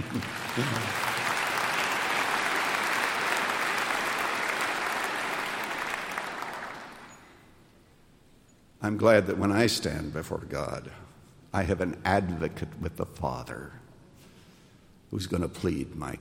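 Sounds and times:
speech: 0.0s - 1.0s, 8.8s - 13.8s, 15.1s - 16.1s
audience clapping: 0.0s - 7.4s.

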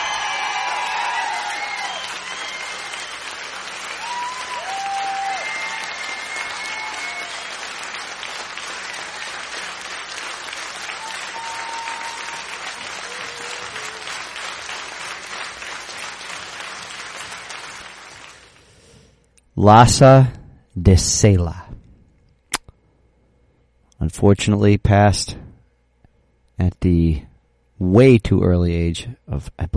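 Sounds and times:
crowd whoops and whistles: 0.0s - 3.3s, 3.9s - 7.5s, 11.0s - 14.1s
crowd clapping: 0.0s - 18.8s
speech: 19.6s - 21.6s, 24.2s - 25.4s, 26.6s - 29.7s.

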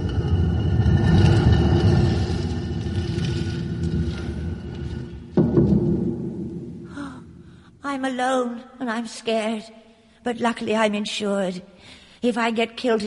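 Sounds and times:
heavy stone door rolling shut: 0.0s - 6.3s
speech: 7.9s - 13.0s.

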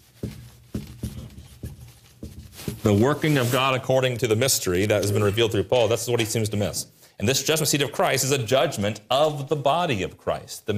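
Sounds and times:
writing strokes scraping on a board: 0.0s - 3.7s
speech: 2.8s - 10.7s.

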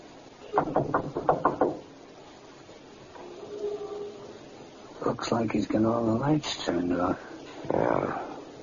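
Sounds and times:
speech: 0.5s - 1.4s, 5.1s - 8.3s
knocks on a door: 0.5s - 1.9s.

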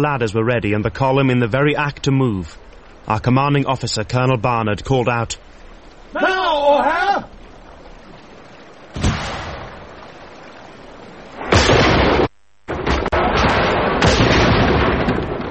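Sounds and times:
speech: 0.0s - 5.5s, 6.1s - 7.4s
gunfire: 9.0s - 9.8s, 11.4s - 15.4s.

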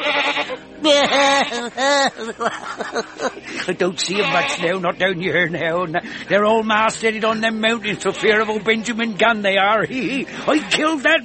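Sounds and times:
goat bleating: 0.0s - 2.2s, 3.9s - 4.9s, 7.8s - 9.0s, 10.0s - 11.2s
laughter: 0.4s - 4.6s, 9.7s - 10.7s
speech: 0.8s - 11.2s.

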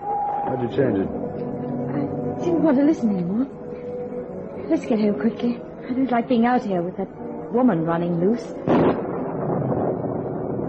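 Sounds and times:
speech: 0.5s - 3.6s, 4.7s - 9.0s
thunder clap of a storm: 8.6s - 10.6s.

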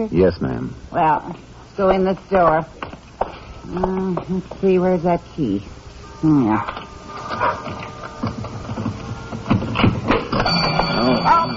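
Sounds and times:
speech: 0.0s - 3.0s, 3.7s - 6.8s, 7.4s - 8.6s
store burglar alarm ringing: 6.0s - 11.5s.

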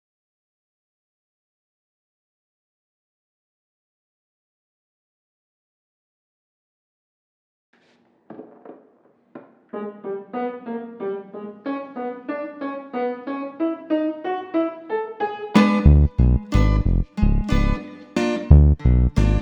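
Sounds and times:
instrumental music: 9.7s - 19.4s.

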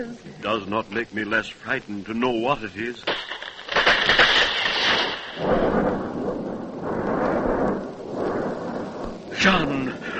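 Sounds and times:
speech: 0.0s - 3.4s, 9.4s - 10.0s
thunder: 3.1s - 10.1s.

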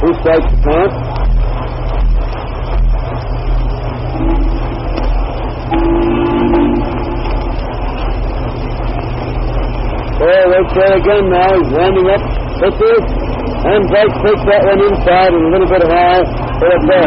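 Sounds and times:
rumbling rolling rail noise: 0.0s - 17.0s
speech: 0.1s - 1.1s, 10.8s - 17.0s
train whistle low-pitched blasts: 4.2s - 4.8s, 5.7s - 7.4s.

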